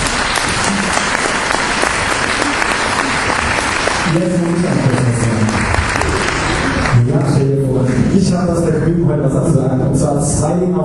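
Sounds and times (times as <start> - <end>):
audience applause: 0.0 - 8.1
speech: 4.1 - 5.4, 8.4 - 10.8.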